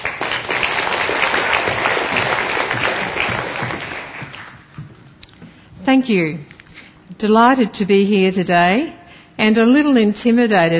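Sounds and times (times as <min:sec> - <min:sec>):
audience applause: 0:00.0 - 0:04.8
speech: 0:05.9 - 0:06.5, 0:07.2 - 0:10.7.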